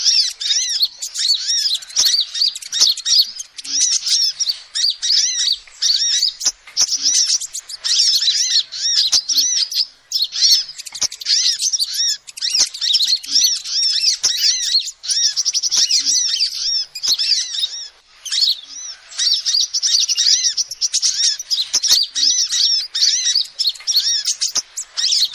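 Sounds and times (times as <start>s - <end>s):
lovebirds chirping: 0.0s - 25.3s.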